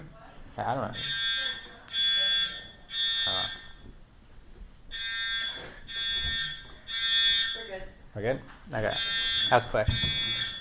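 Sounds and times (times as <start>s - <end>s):
noise: 0.0s - 10.5s
speech: 0.6s - 1.2s, 8.2s - 10.4s
fire alarm sounding: 0.9s - 3.9s, 4.9s - 8.0s, 8.9s - 10.5s.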